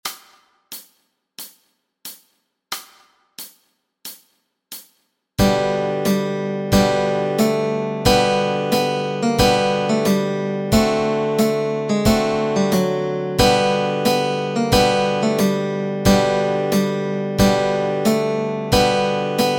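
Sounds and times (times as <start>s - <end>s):
guitar and ukulele playing melody and chords: 5.4s - 19.5s.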